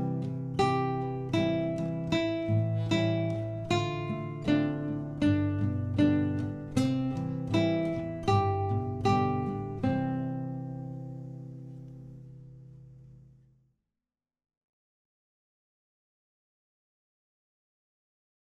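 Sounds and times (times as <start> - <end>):
slow guitar: 0.0 - 13.6.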